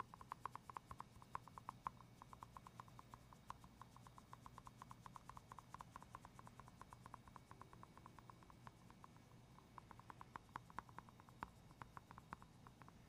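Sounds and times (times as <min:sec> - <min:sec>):
gentle ASMR tapping and scratching: 0:00.0 - 0:13.0.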